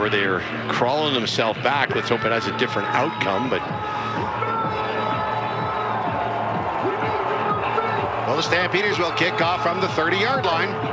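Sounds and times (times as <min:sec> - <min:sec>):
speech: 0:00.0 - 0:04.4, 0:08.4 - 0:10.9
stadium crowd roaring at a football game featuring the Stampeders: 0:04.2 - 0:10.9.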